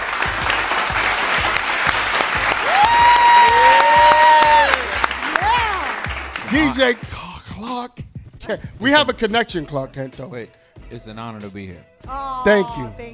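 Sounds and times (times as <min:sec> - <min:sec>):
audience applause: 0:00.0 - 0:07.0
speech: 0:06.5 - 0:07.2, 0:08.5 - 0:13.1.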